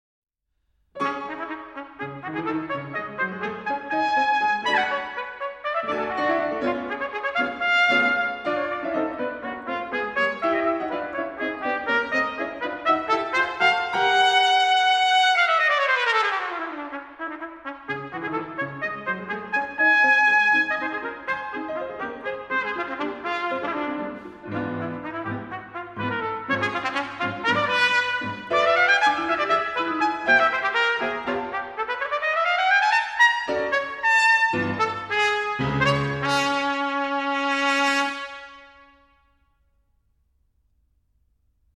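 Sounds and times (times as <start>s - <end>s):
piano playing a scherzo: 1.0s - 39.4s
trumpet playing a scherzo: 1.0s - 39.6s.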